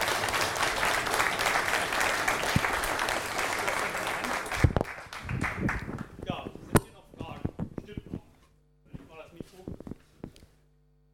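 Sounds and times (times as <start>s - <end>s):
audience applause: 0.0s - 6.1s.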